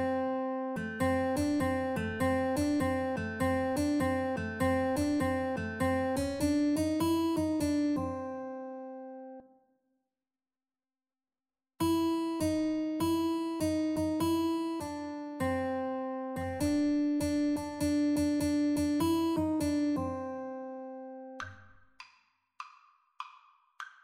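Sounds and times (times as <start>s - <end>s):
guitar duet: 0.0s - 9.4s, 11.8s - 21.5s.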